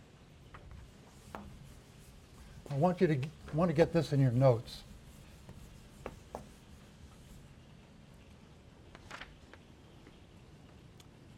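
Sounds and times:
scratching strokes of a diagram sketched by hand during a lecture: 0.7s - 7.5s
speech: 2.7s - 4.9s.

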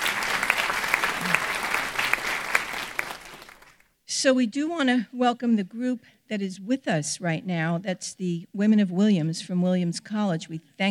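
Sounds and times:
auditorium audience applauding at an event: 0.0s - 3.8s
speech: 4.2s - 10.8s.

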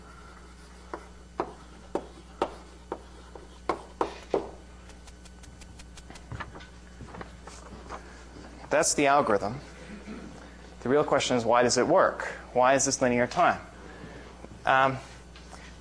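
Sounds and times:
lecturer writing on a board in a lecture hall: 0.6s - 6.3s
speech: 8.7s - 9.7s, 10.8s - 13.7s, 14.7s - 15.1s.

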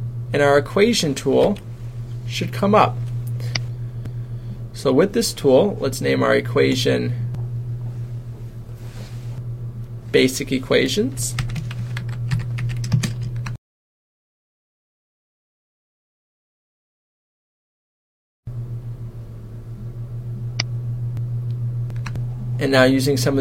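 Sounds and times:
low steady hum: 0.0s - 13.6s, 18.5s - 23.3s
speech: 0.3s - 1.7s, 2.3s - 3.5s, 4.8s - 7.2s, 10.1s - 11.5s, 22.6s - 23.3s
computer keyboard typing equations: 11.4s - 13.5s.

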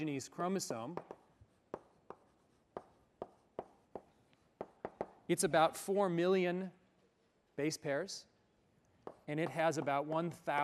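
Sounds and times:
speech: 0.0s - 1.2s, 5.3s - 6.8s, 7.6s - 8.3s, 9.0s - 10.6s
writing on a board during a molecular biology lecture: 0.5s - 5.2s.

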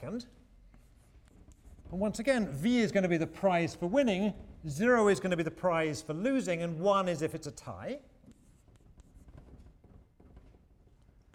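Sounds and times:
speech: 0.0s - 0.4s, 1.9s - 8.1s
writing on a board during a lecture: 0.7s - 4.3s, 7.6s - 11.3s.

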